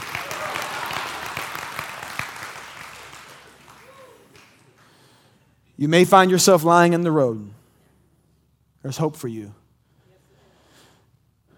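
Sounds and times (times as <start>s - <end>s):
audience clapping: 0.0s - 5.2s
speech: 5.8s - 7.6s, 8.8s - 9.6s.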